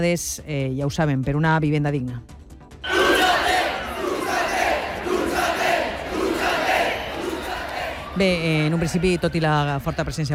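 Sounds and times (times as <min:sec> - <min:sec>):
speech: 0:00.0 - 0:02.4, 0:08.2 - 0:10.3
large crowd chanting a nationalist slogan in unison: 0:02.8 - 0:08.2.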